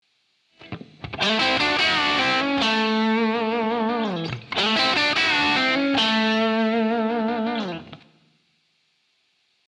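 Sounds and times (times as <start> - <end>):
blues guitar lick: 0.6 - 8.2.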